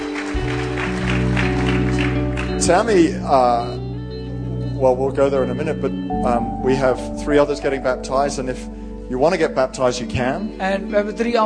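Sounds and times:
audience applause: 0:00.0 - 0:03.0
speech: 0:02.6 - 0:03.8, 0:04.8 - 0:11.4.

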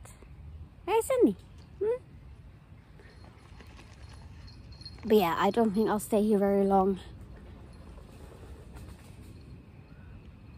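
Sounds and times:
speech: 0:01.0 - 0:02.1, 0:05.0 - 0:07.2
passing train: 0:04.7 - 0:10.5.

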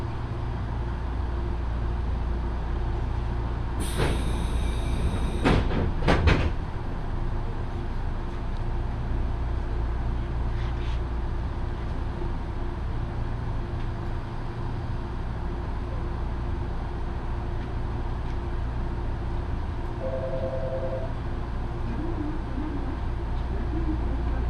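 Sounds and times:
Yoro Railway train rumbling: 0:00.0 - 0:24.4
two-note tone: 0:20.0 - 0:21.1.

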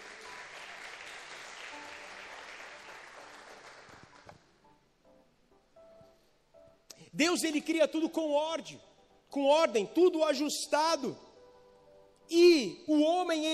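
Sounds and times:
audience applauding: 0:00.0 - 0:04.4
speech: 0:07.2 - 0:11.2, 0:12.3 - 0:13.5.

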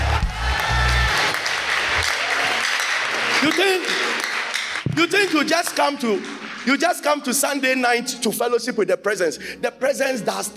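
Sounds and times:
audience clapping hands: 0:00.0 - 0:07.9
speech: 0:03.4 - 0:04.0, 0:05.0 - 0:10.5.

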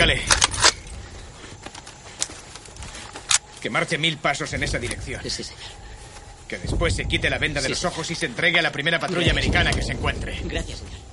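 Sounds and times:
speech: 0:00.0 - 0:00.4, 0:03.6 - 0:05.9, 0:06.5 - 0:11.1
rifles being loaded: 0:00.0 - 0:03.9.

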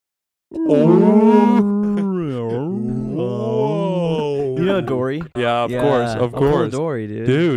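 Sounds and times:
speech: 0:00.5 - 0:01.8, 0:04.8 - 0:07.5
person imitating a whale call: 0:00.5 - 0:04.2
laughter: 0:00.6 - 0:07.0.

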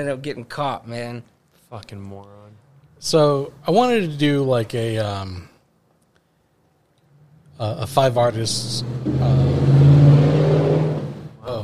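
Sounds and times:
speech: 0:00.0 - 0:05.5, 0:07.6 - 0:09.8
big truck driving past: 0:07.0 - 0:11.6.

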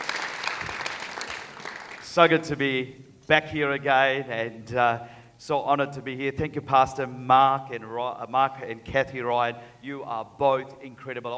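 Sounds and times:
audience applause: 0:00.0 - 0:02.1
speech: 0:02.2 - 0:11.3.

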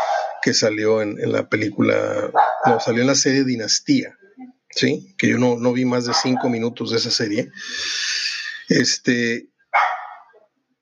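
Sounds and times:
dog barking: 0:00.0 - 0:00.5, 0:02.3 - 0:03.0, 0:06.1 - 0:06.7, 0:09.8 - 0:10.4
speech: 0:00.4 - 0:09.5.

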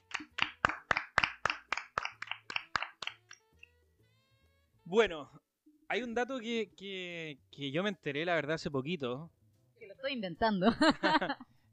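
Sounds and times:
applause: 0:00.0 - 0:03.4
speech: 0:04.9 - 0:09.4, 0:10.0 - 0:11.5
laughter: 0:10.7 - 0:11.5.

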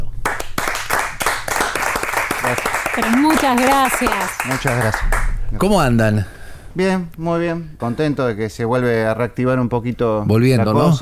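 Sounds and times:
sustained audience applause: 0:00.2 - 0:05.4
speech: 0:02.5 - 0:10.9.

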